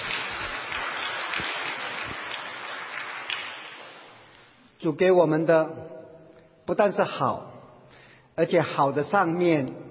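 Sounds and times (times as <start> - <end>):
audience applauding: 0.0 - 4.2
speech: 4.8 - 5.9, 6.7 - 7.5, 8.4 - 9.8.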